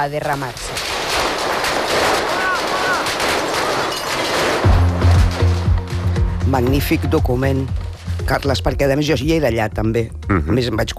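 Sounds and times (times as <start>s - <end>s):
speech: 0.0s - 1.0s, 6.5s - 10.9s
gunfire as defenders shoot at attackers: 0.4s - 6.4s.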